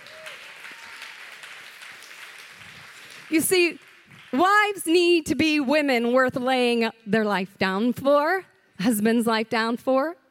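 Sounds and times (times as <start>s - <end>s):
audience clapping: 0.0s - 4.9s
speech: 3.3s - 10.2s.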